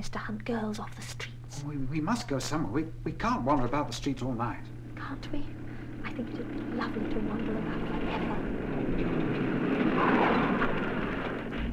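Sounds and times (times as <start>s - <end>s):
speech: 0.0s - 9.2s, 10.0s - 10.6s
taxi engine rumbling as the cab pulls up on the street: 1.6s - 11.7s.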